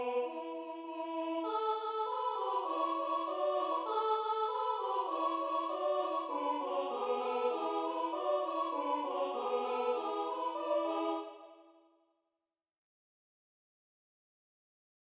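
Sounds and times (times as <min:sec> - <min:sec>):
people singing colinde carols in Ardeal: 0:00.0 - 0:11.8.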